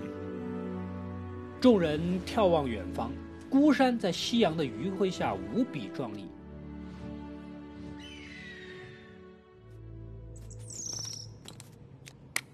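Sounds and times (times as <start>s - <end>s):
speech: 1.6s - 6.4s
thrush chirping at a mountain at sunset: 8.0s - 9.2s, 10.4s - 11.4s.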